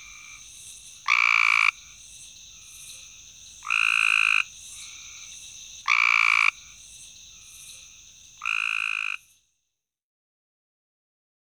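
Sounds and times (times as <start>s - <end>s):
Cope's gray treefrog trilling: 0.0s - 3.0s, 3.6s - 7.4s, 8.4s - 9.3s.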